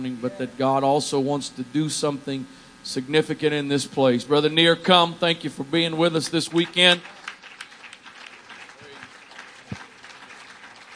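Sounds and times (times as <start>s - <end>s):
speech: 0.0s - 7.2s
audience clapping: 6.0s - 10.9s.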